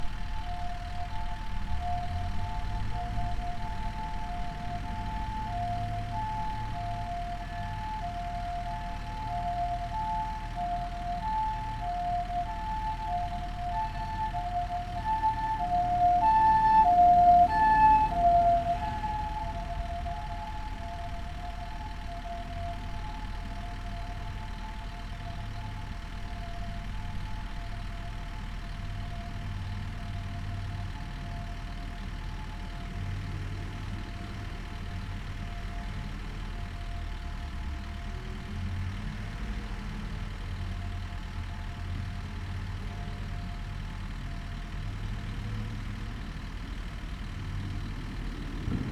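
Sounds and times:
ambulance alarm siren: 0.0s - 48.8s.

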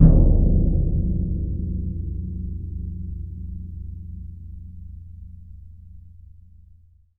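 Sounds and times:
drums: 0.0s - 3.8s.

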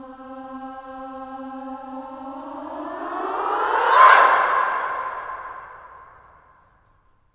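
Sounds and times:
female swooping sound: 2.3s - 6.3s.

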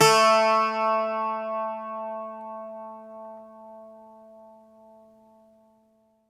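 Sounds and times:
Greek bazouki plucked strings: 0.0s - 4.4s.

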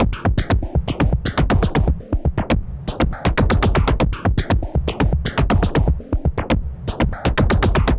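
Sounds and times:
music beats mix: 0.0s - 7.9s.

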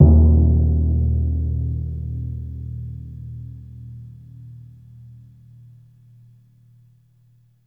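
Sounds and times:
timpani pianissimo note: 0.0s - 3.9s.

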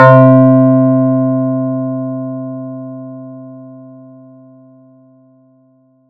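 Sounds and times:
ringing effect: 0.0s - 0.9s.

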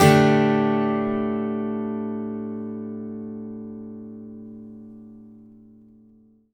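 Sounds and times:
acoustic guitar D sus chord upstrum in country style: 0.0s - 5.8s.

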